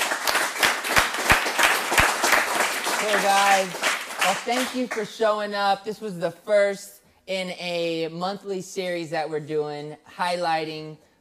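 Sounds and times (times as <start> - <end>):
audience applause: 0.0 - 5.0
speech: 3.1 - 11.1.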